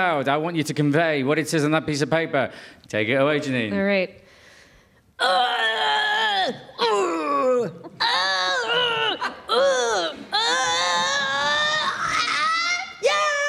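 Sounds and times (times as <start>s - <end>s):
speech: 0.0s - 4.2s, 5.2s - 8.1s
person groaning and wailing imitating moving a sofa: 5.2s - 13.4s.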